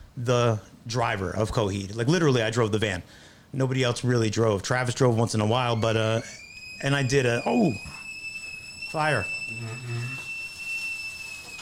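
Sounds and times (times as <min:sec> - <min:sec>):
speech: 0:00.2 - 0:08.0, 0:08.9 - 0:10.3
kettle whistling: 0:05.4 - 0:11.6.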